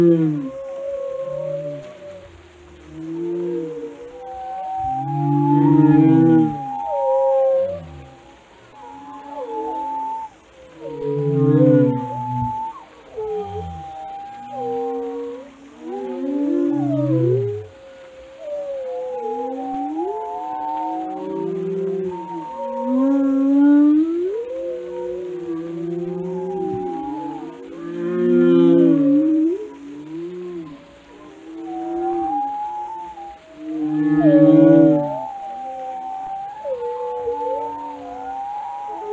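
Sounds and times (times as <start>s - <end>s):
speech: 0.0s - 0.6s
whale moans: 0.0s - 39.1s.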